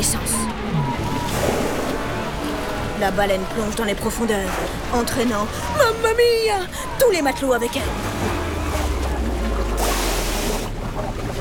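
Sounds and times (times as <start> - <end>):
constant low rumble of churning water: 0.0 - 11.3
rough sea waves crashing: 0.0 - 11.3
speech: 3.0 - 8.4.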